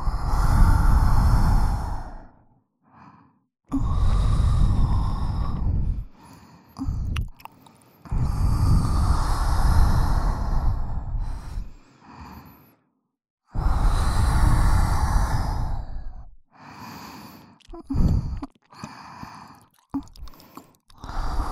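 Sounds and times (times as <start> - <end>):
heavy breathing at both ears: 0.0 - 12.9, 13.6 - 21.4
wet mouth sounds at both ears: 6.8 - 7.8, 17.3 - 21.4.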